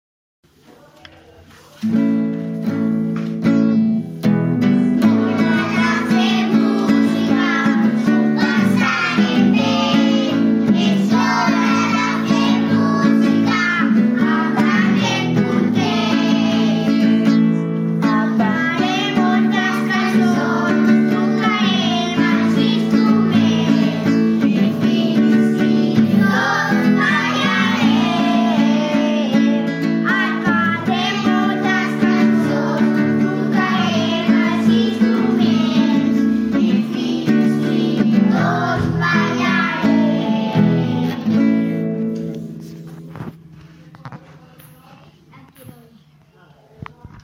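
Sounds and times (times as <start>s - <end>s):
music: 1.8s - 44.5s.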